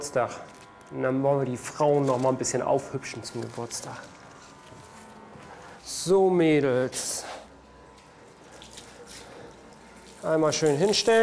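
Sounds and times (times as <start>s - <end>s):
speech: 0.0s - 4.2s, 6.0s - 7.4s, 10.2s - 11.2s
warm water at 28 degrees running while tortoises are washed: 8.3s - 11.2s.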